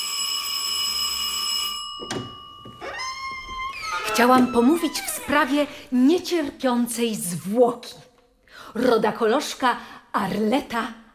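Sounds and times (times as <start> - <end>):
doorbell ringing with harsh electric buzz: 0.0 - 5.4
speech: 4.2 - 8.1, 8.7 - 11.0.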